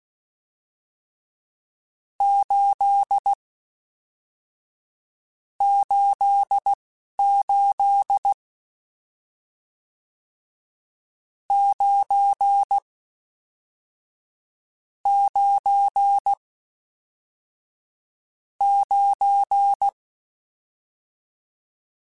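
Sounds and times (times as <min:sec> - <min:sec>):
Morse code CW code groups: 0:02.2 - 0:03.3, 0:05.6 - 0:08.4, 0:11.5 - 0:12.8, 0:15.1 - 0:16.4, 0:18.6 - 0:20.0.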